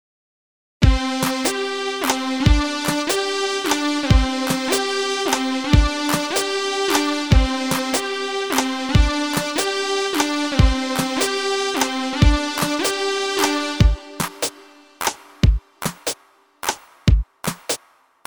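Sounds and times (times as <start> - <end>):
rhythmic idea: 0.8 - 17.8.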